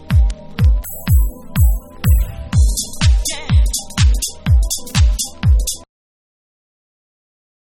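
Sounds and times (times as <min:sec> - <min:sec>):
jazz groove remix: 0:00.2 - 0:05.9.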